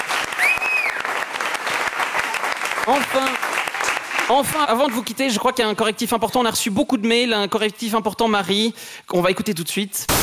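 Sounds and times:
audience applause: 0:00.0 - 0:04.3
speech: 0:02.9 - 0:03.4, 0:04.3 - 0:10.2.

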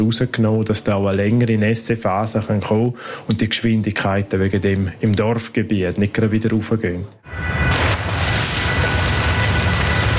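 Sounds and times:
speech: 0:00.0 - 0:07.8
water gushing from a borehole pipe: 0:07.7 - 0:10.1.

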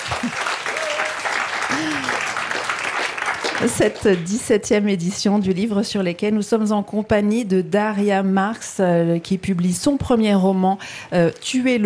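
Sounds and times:
live audience applause at the Le Livre sur les quais book festival in Morges: 0:00.0 - 0:04.4
speech: 0:03.6 - 0:11.8.

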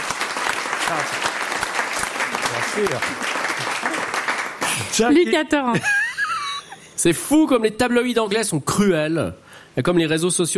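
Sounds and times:
audience applause: 0:00.0 - 0:05.1
speech: 0:00.9 - 0:01.3, 0:02.5 - 0:04.0, 0:04.9 - 0:06.0, 0:07.0 - 0:10.5.

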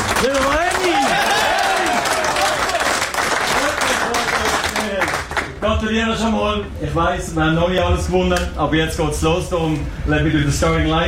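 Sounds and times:
team applauding in a locker room: 0:00.0 - 0:05.7
speech: 0:00.2 - 0:00.6, 0:05.8 - 0:11.0.

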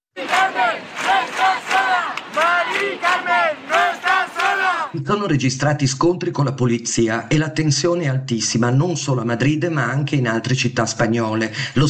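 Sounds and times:
protest crowd chanting in Madrid: 0:00.1 - 0:05.0
speech: 0:05.0 - 0:11.8.

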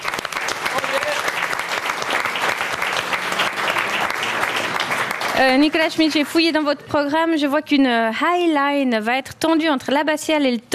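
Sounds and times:
audience applause: 0:00.0 - 0:06.6
speech: 0:05.4 - 0:10.7.

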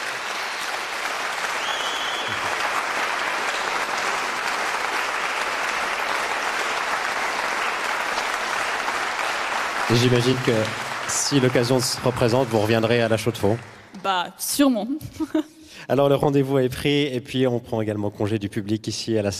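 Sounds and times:
audience applause after recital: 0:00.0 - 0:14.0
speech: 0:09.9 - 0:19.3.

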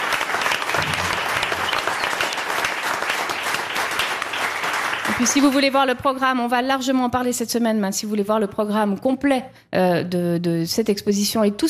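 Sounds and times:
audience applause: 0:00.0 - 0:05.5
speech: 0:05.2 - 0:11.6.

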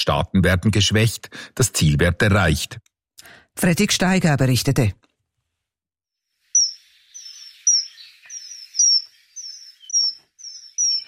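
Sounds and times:
speech: 0:00.0 - 0:05.0
common kingfisher giving sharp high whistles: 0:06.6 - 0:11.0.

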